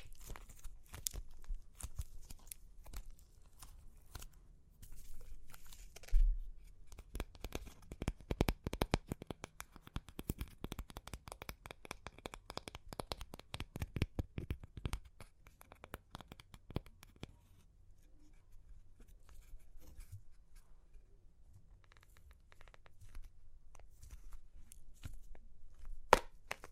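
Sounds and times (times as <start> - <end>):
crunchy clay cracking and crumbling: 0.0 - 17.4, 21.9 - 26.7.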